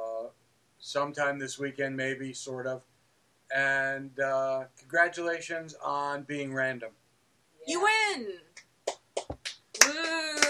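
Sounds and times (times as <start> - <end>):
speech: 0.8 - 2.9, 3.5 - 7.0, 7.6 - 8.5
people high-fiving each other: 8.9 - 10.4.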